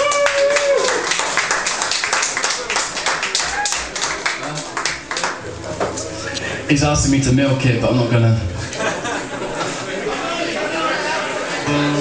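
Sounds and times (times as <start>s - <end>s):
audience applause: 0.0s - 5.6s
speech: 6.7s - 8.5s
laughter: 8.6s - 11.7s.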